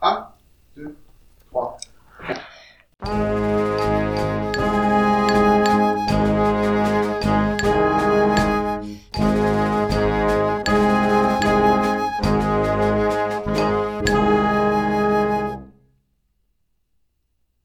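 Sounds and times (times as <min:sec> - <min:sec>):
song in B flat at 80 bpm: 0:03.0 - 0:15.6.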